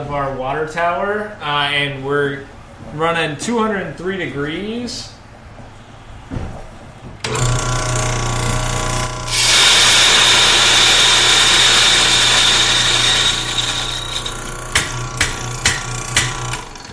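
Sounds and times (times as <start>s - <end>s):
speech: 0.1s - 5.2s
electric coffee grinder grinding beans: 7.3s - 16.9s.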